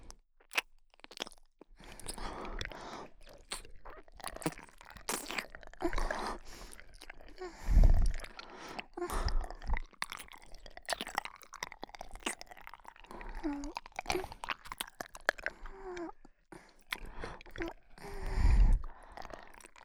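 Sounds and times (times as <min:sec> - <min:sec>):
ear licking sounds in the right ear: 0:00.5 - 0:19.8
person whispering in the right ear: 0:01.9 - 0:10.3, 0:13.0 - 0:16.2, 0:16.9 - 0:19.8.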